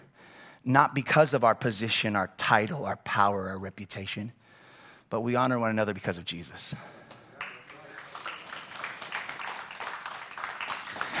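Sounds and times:
speech: 0.6s - 4.4s, 5.1s - 7.0s
audience clapping: 7.0s - 11.1s.

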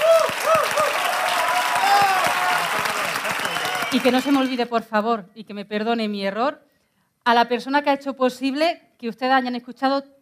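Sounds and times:
loud audience applause: 0.0s - 4.6s
whistles and cheers: 0.0s - 4.6s
speech: 3.9s - 10.2s.

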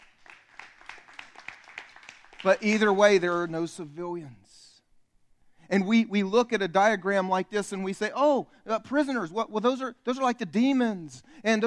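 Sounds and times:
audience clapping: 0.0s - 4.0s
speech: 2.4s - 4.4s, 5.7s - 11.6s.

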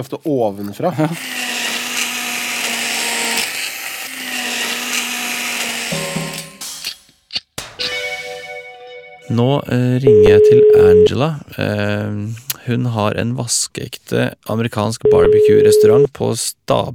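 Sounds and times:
speech: 0.0s - 1.5s, 9.3s - 16.9s
kitchen blender running: 1.0s - 6.9s.

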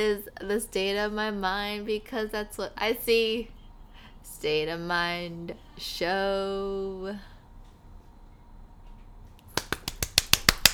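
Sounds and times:
speech: 0.0s - 3.6s, 4.2s - 7.3s
hand claps: 9.4s - 10.7s.

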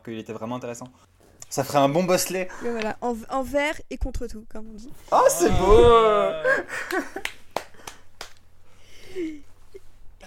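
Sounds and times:
speech: 0.0s - 7.4s, 9.2s - 9.5s
laughter: 5.3s - 7.9s
hand claps: 6.8s - 8.5s.

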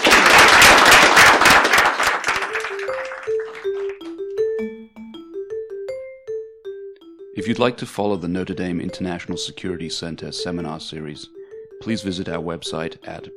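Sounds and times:
audience applause: 0.0s - 4.0s
simple tonal melody of single stepping notes: 2.3s - 13.3s
speech: 7.4s - 13.3s.

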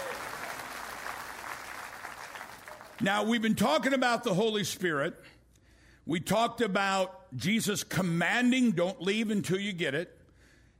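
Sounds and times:
audience clapping: 0.0s - 3.2s
speech: 3.0s - 5.4s, 6.1s - 10.2s.

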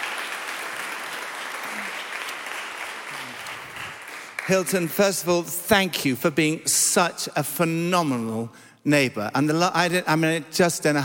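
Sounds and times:
audience applause welcoming a guest onto a stage: 0.0s - 5.0s
speech: 4.5s - 11.0s.

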